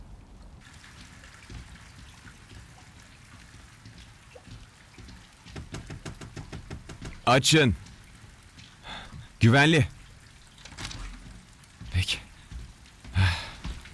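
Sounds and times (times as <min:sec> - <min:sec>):
heavy storm rain: 0:00.0 - 0:13.9
rhythmic drumming hits: 0:05.0 - 0:07.6
speech: 0:07.3 - 0:07.9, 0:09.4 - 0:10.0.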